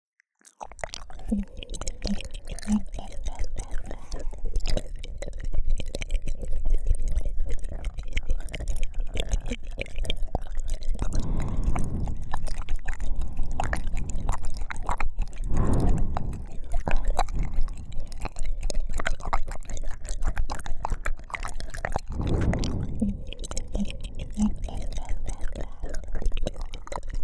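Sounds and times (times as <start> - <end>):
ear licking: 0.6 - 27.2.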